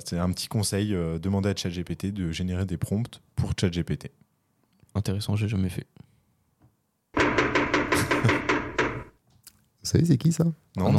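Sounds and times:
speech: 0:00.0 - 0:04.2, 0:05.0 - 0:06.1, 0:09.9 - 0:10.9
knocking on a door: 0:07.2 - 0:09.2.

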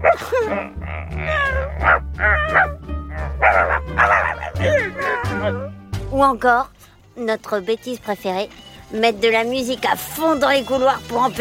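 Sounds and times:
speech: 0:00.2 - 0:02.7, 0:06.2 - 0:11.4
voices imitating animal cries, mostly dog-like barks, yips and whines: 0:01.2 - 0:05.7.

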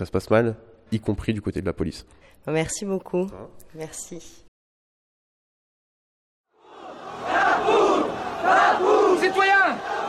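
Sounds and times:
speech: 0:00.0 - 0:04.4
large crowd shouting at Bastille square: 0:06.6 - 0:10.0.

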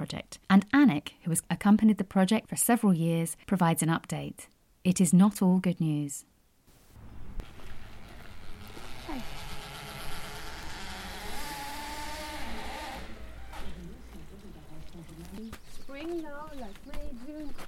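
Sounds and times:
speech: 0:00.1 - 0:06.3
bees buzzing: 0:07.0 - 0:16.1.

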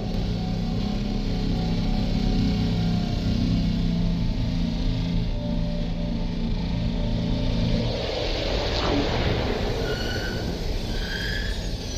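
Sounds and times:
hissing rumble with faint high whines: 0:00.0 - 0:11.9
spacecraft engine drone: 0:00.0 - 0:11.9.

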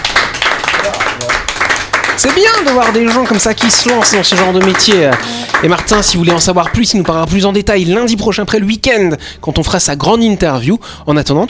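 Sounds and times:
applause: 0:00.0 - 0:07.4
speech: 0:02.2 - 0:11.4.

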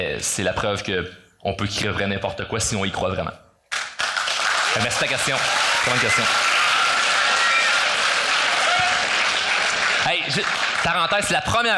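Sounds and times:
speech: 0:00.0 - 0:03.4, 0:04.7 - 0:06.4, 0:10.3 - 0:11.7
audience applause in a school: 0:03.7 - 0:11.4.

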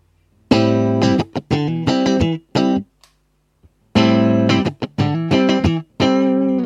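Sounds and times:
electric guitar playing funky blues rhythm: 0:00.5 - 0:02.9, 0:03.9 - 0:06.6.

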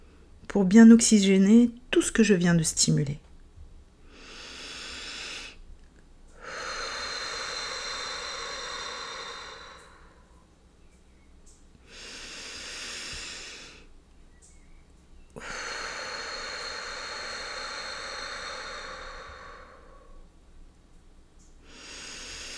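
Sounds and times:
speech: 0:00.6 - 0:03.2
deep slow breathing during a sophrology relaxation session: 0:04.0 - 0:05.6, 0:06.3 - 0:10.5, 0:11.8 - 0:14.0, 0:14.6 - 0:20.4, 0:21.6 - 0:22.5.

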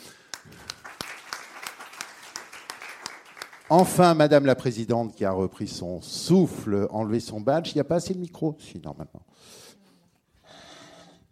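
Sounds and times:
audience applause: 0:00.2 - 0:04.0
speech: 0:03.7 - 0:09.6.

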